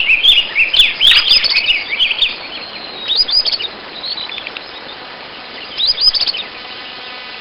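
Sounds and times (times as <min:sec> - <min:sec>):
background hiss: 0:00.0 - 0:07.3
bird chirping: 0:00.0 - 0:07.3.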